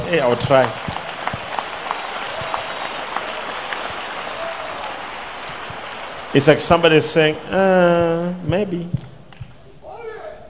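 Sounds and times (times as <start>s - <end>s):
crowd applauding: 0.0s - 8.3s
speech: 0.1s - 0.9s, 6.3s - 9.0s.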